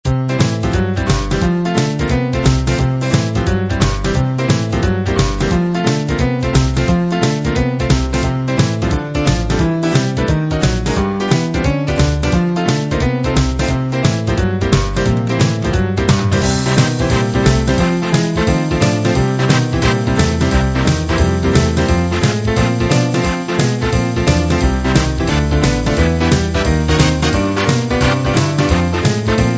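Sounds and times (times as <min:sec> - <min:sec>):
boogie music: 0:00.0 - 0:29.5.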